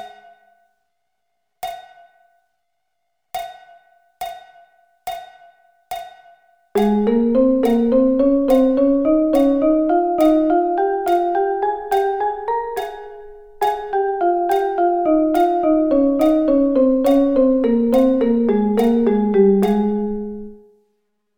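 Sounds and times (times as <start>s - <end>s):
drum double sticking in A flat: 6.8s - 20.2s.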